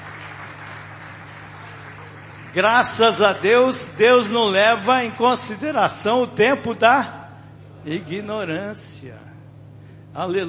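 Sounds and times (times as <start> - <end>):
church congregation applause: 0.0 - 5.2
low steady hum: 0.0 - 10.4
speech: 2.6 - 7.2, 7.8 - 9.3, 10.1 - 10.4.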